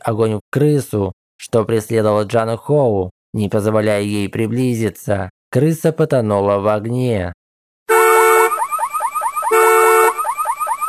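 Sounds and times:
speech: 0.0 - 7.4
car alarm: 7.9 - 10.8.

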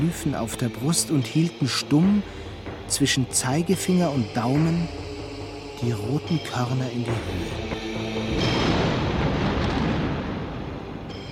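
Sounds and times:
speech: 0.0 - 5.1, 5.8 - 7.9
cannon shots from the Vltava river booming: 8.3 - 11.2
winter thunderstorm raging over the city: 8.3 - 11.2.

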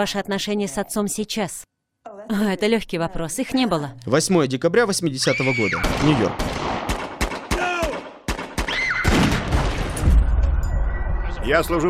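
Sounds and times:
speech: 0.0 - 1.7, 2.3 - 6.8, 11.5 - 11.8
gunshots: 5.8 - 10.3.

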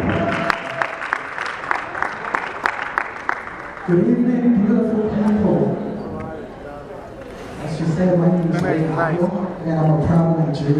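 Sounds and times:
audience applause: 0.0 - 4.0
speech: 3.9 - 5.7, 7.8 - 10.7.

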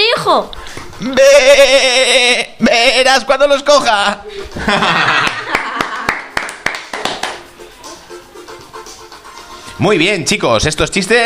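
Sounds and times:
speech: 0.3 - 5.6, 9.8 - 11.2
person imitating a sheep bleating: 1.0 - 3.1
laughter: 4.2 - 6.2.

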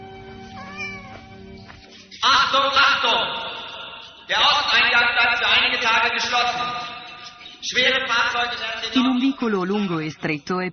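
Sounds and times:
kitten meowing: 0.6 - 1.2
speech: 2.2 - 3.4, 4.3 - 6.9, 7.6 - 10.7.

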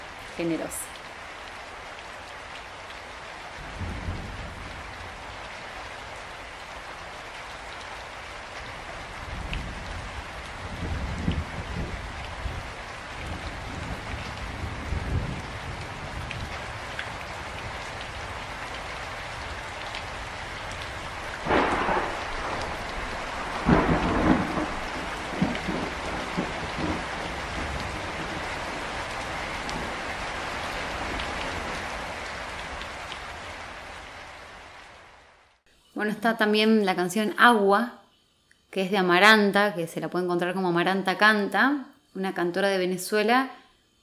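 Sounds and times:
steady rain: 0.0 - 37.4, 40.2 - 44.0
speech: 0.4 - 1.0, 36.0 - 38.0, 38.8 - 43.6
thunder rumbling with louder cracks and booms: 3.4 - 7.2, 8.6 - 35.3.

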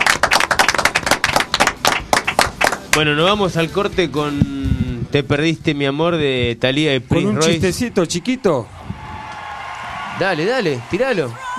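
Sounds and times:
group of people applauding: 0.0 - 3.2, 9.2 - 11.5
speech: 3.0 - 8.7, 10.2 - 11.5.

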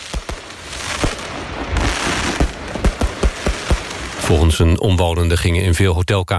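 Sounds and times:
heavy fireworks and firecrackers exploding at the Okura Hotel: 0.0 - 4.8
speech: 4.3 - 6.3.

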